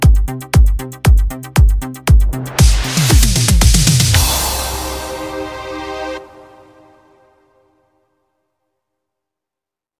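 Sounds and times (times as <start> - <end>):
italo disco on Yamaha PSR S770 keyboard: 0.0 - 7.2.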